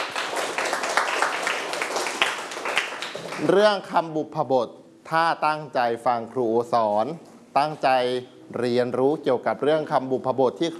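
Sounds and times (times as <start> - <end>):
students clapping: 0.0 - 3.5
speech: 3.4 - 10.7.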